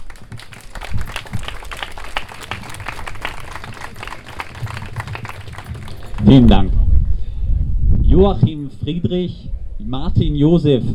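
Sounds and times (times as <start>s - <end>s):
audience applause: 0.0s - 6.4s
speech: 6.2s - 6.7s, 8.2s - 10.9s.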